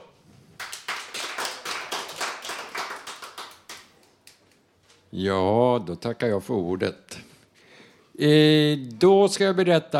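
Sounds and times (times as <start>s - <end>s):
small audience applause: 0.6s - 4.3s
speech: 5.1s - 7.2s, 8.2s - 9.9s.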